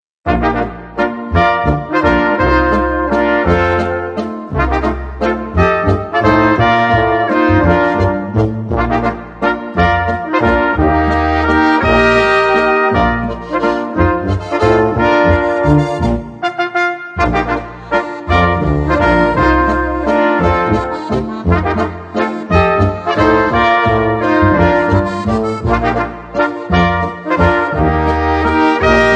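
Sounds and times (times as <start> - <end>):
waltz music: 0.3 - 29.1.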